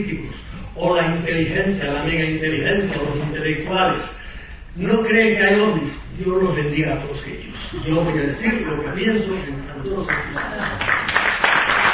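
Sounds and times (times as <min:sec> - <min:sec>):
speech: 0:00.8 - 0:04.2, 0:04.8 - 0:11.1
audience applause: 0:10.1 - 0:11.9.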